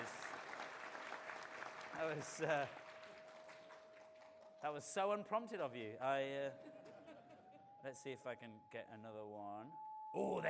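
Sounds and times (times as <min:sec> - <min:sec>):
audience round of applause: 0:00.0 - 0:04.6
speech: 0:02.0 - 0:02.8, 0:04.6 - 0:06.8, 0:07.8 - 0:10.4.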